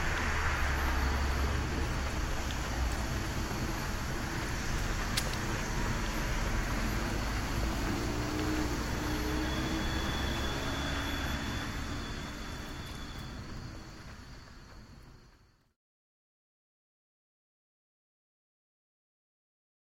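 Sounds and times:
city sounds: 0:00.0 - 0:15.7.

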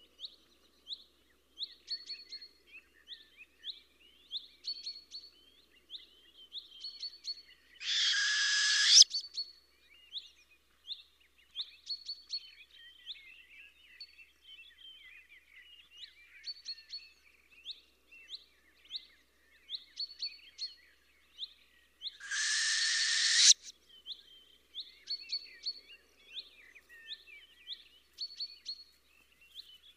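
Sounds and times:
northern hawk owl voice: 0:07.8 - 0:09.0, 0:22.2 - 0:23.7.

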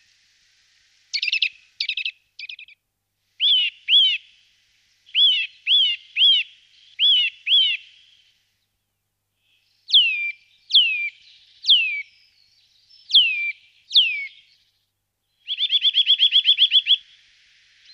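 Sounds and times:
Eurasian nuthatch calling: 0:01.1 - 0:02.8, 0:03.4 - 0:08.4, 0:09.4 - 0:17.9.

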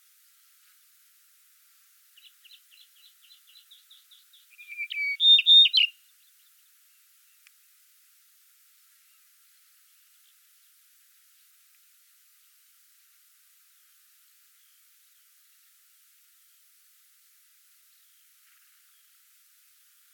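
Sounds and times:
yellow-breasted bunting calling: 0:04.5 - 0:05.9.

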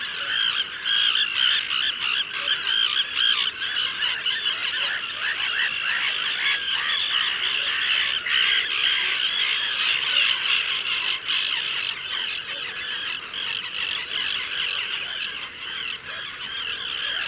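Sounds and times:
common tern calling: 0:00.0 - 0:17.2.

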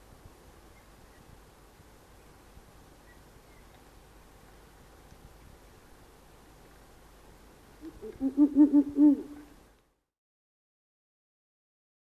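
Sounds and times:
Ural owl calling: 0:07.8 - 0:09.6.

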